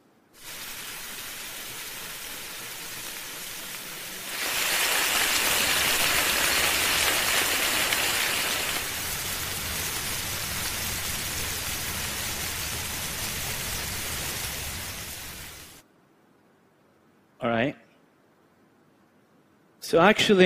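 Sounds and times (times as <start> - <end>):
bacon frying: 0.4 - 15.8
speech: 19.9 - 20.4.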